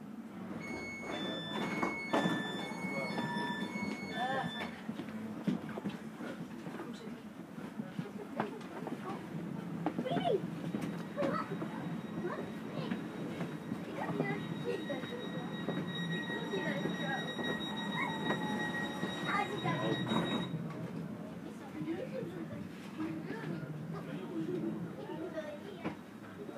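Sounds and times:
S-Bahn train rumble: 0.2s - 26.4s
murmuring voices: 0.6s - 4.7s, 7.9s - 25.4s
bright stepped chime: 0.6s - 4.8s, 10.7s - 20.6s.

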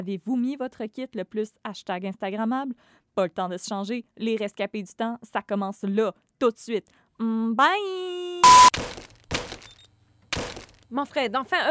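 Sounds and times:
speech: 0.0s - 9.1s, 10.9s - 11.7s
mobile phone being smashed: 8.4s - 9.8s, 10.4s - 10.8s.

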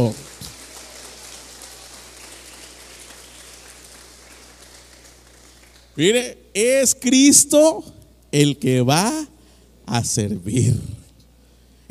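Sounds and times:
speech: 0.0s - 0.3s, 6.0s - 9.3s, 9.9s - 11.0s
audience clapping hands as offering: 0.0s - 6.0s.

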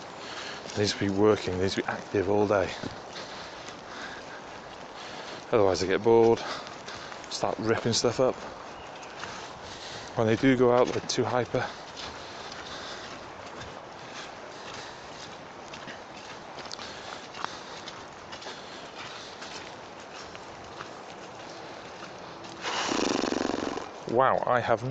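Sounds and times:
person's footsteps walking: 0.0s - 24.2s
outdoor noise: 0.0s - 24.8s
speech: 0.8s - 3.1s, 5.5s - 6.7s, 7.3s - 8.6s, 10.2s - 11.8s, 24.2s - 24.8s
rushing burst: 22.6s - 23.9s.

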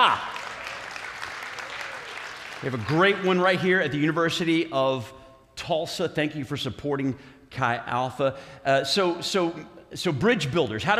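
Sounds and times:
speech: 0.0s - 0.3s, 2.6s - 10.9s
audience applause: 0.0s - 3.5s.

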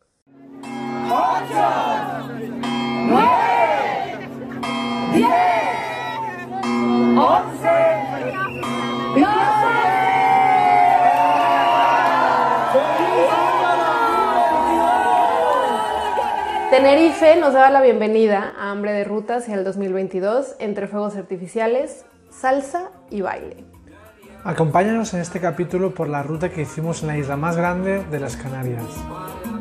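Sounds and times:
steady musical hum: 0.3s - 17.7s
New Year crowd shouting countdown: 0.6s - 17.6s
speech: 16.9s - 23.7s, 24.4s - 29.3s.

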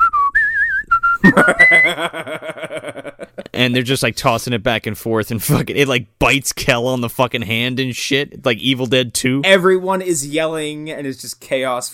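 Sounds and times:
person whistling a bouncy jazzy basketball team theme: 0.0s - 2.0s
speech: 1.2s - 3.0s, 3.6s - 11.9s
laughter: 1.2s - 3.6s.

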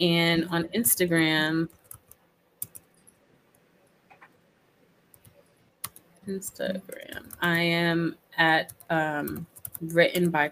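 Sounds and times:
speech: 0.0s - 1.8s, 6.3s - 10.4s
typing on a computer keyboard: 1.7s - 3.1s, 5.1s - 6.1s, 8.7s - 10.3s.

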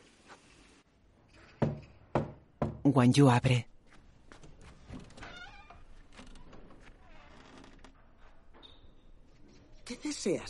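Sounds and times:
knocking on a house door: 1.6s - 2.9s
speech: 2.9s - 3.7s, 10.3s - 10.4s.

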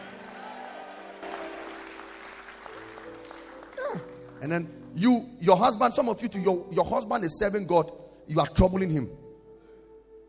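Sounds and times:
audience clapping: 0.0s - 5.0s
speech: 4.4s - 9.2s.

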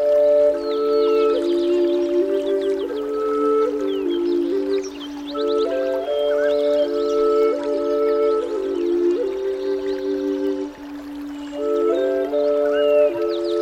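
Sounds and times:
slow stepping flute melody of sustained tones: 0.0s - 13.6s
gentle birds chirping: 0.5s - 13.6s.

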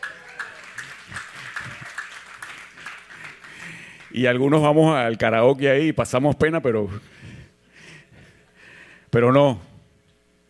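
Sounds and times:
audience applause: 0.0s - 4.2s
speech: 4.2s - 7.2s, 9.2s - 9.7s.

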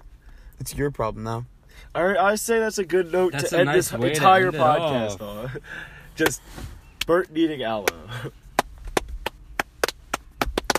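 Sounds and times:
speech: 0.6s - 8.4s
hand claps escalating into applause: 7.8s - 10.7s.

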